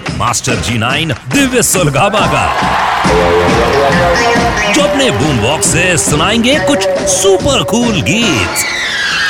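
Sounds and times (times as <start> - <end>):
speech: 0.2 - 9.2
crowd clapping and cheering loudly to welcome a guest: 1.5 - 8.6
voices whooping: 2.2 - 8.7.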